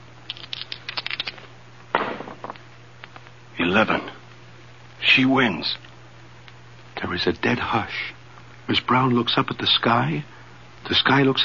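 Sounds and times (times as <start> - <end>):
dice being rolled: 0.3 - 2.6
speech: 3.8 - 4.2, 5.2 - 5.9, 7.0 - 11.4.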